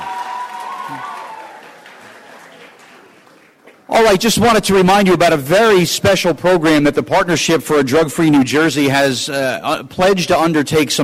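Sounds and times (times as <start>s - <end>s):
audience applause: 0.0s - 3.9s
speech: 0.9s - 1.1s, 4.0s - 11.0s.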